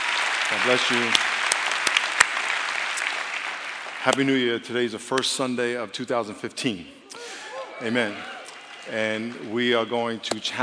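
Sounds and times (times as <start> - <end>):
audience applause: 0.0 - 4.7, 7.7 - 9.7
speech: 0.5 - 1.3, 4.0 - 7.0, 7.8 - 10.6.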